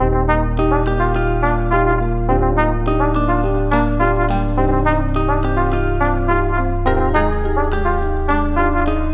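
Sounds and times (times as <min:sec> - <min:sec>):
music loop in D sharp major: 0:00.0 - 0:09.1.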